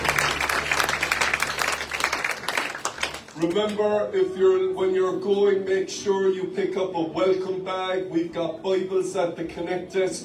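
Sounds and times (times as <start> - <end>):
audience applause: 0.0 - 3.5
speech: 3.4 - 10.2.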